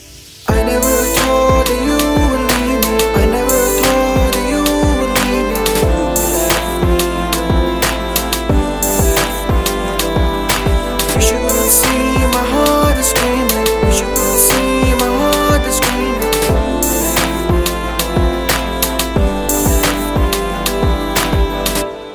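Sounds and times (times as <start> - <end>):
Hindi Bollywood music ringtone: 0.5 - 22.1.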